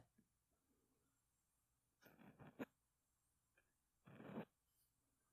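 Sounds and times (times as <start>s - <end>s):
cotton swab in right ear: 2.0s - 2.7s, 4.1s - 4.6s.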